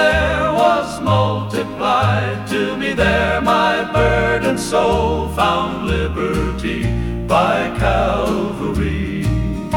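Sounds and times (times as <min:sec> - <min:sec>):
male voice singing a gospel hymn: 0:00.0 - 0:09.6.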